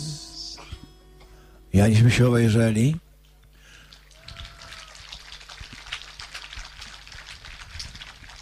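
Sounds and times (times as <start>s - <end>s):
speech: 1.8s - 3.0s
audience applause: 3.9s - 8.4s.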